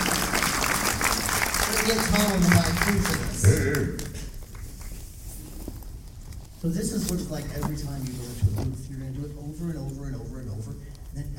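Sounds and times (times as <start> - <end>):
audience applause: 0.0 - 4.4
speech: 1.8 - 4.1, 6.6 - 10.4.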